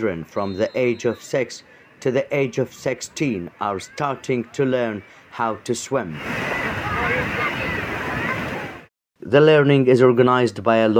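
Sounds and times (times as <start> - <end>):
speech: 0.0 - 7.6, 9.3 - 10.9
waves washing onto the Carrara beachfront in the southern Gaza Strip: 2.6 - 8.9.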